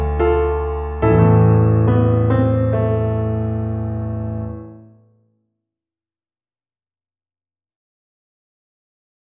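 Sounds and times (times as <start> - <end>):
piano accompaniment: 0.0 - 5.1.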